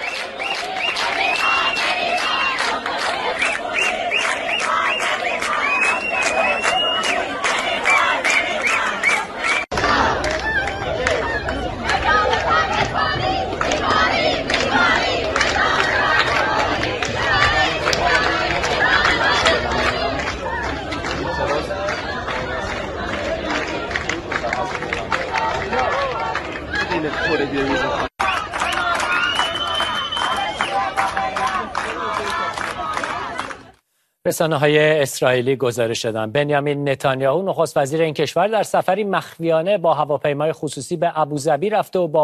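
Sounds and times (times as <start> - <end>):
protesting students chanting slogans: 0.0 - 33.7
speech: 34.4 - 42.2.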